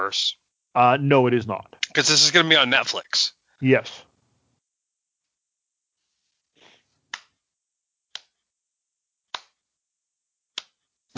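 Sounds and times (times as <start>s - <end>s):
speech: 0.0s - 4.1s
brief soft rustle: 5.9s - 7.1s
slow deliberate hand clapping: 7.1s - 7.3s.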